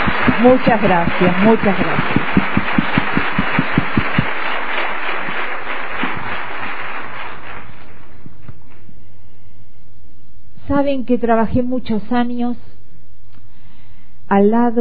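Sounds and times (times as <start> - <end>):
audience applause: 0.0 - 8.2
speech: 0.4 - 2.7, 10.7 - 12.7, 14.3 - 14.7.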